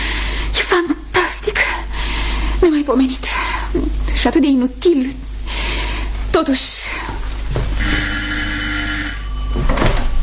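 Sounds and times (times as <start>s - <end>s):
low noise: 0.0s - 10.2s
speech: 2.6s - 5.2s, 6.4s - 7.0s
old-style telephone bell ringing: 7.8s - 10.2s.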